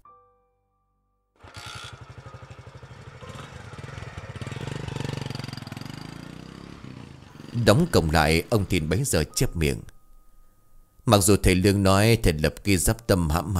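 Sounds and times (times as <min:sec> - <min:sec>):
motorbike revving and speeding away: 0:01.4 - 0:09.1
speech: 0:07.6 - 0:09.9, 0:11.1 - 0:13.5.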